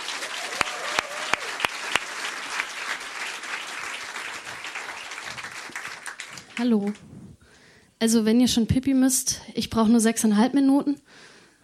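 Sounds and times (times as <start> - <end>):
audience applause for a poetry slam performer: 0.0 - 7.0
speech: 6.6 - 7.1, 8.0 - 11.6.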